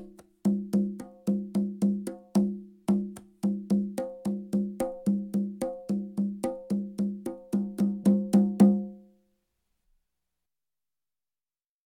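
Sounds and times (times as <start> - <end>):
slow South Seas conga rhythm: 0.0 - 9.0.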